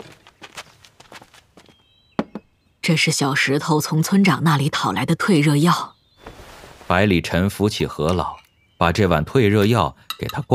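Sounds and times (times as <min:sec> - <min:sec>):
footsteps of a woman walking in carrying a bowl of water: 0:00.0 - 0:01.8
speech: 0:02.9 - 0:06.0, 0:06.9 - 0:10.5.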